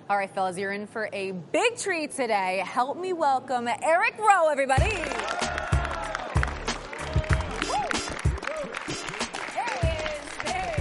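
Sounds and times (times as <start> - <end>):
speech: 0.1 - 5.4
audience applause: 4.8 - 10.7.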